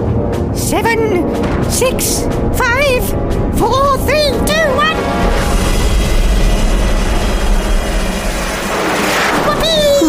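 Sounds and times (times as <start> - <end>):
speech: 0.7 - 5.0
rocket launching roaring whoosh: 5.2 - 10.0.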